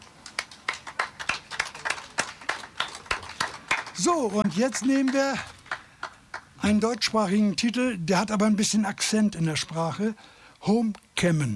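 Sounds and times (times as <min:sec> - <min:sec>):
scattered applause from a small audience: 0:00.0 - 0:06.9
speech: 0:04.0 - 0:05.6, 0:06.6 - 0:11.5.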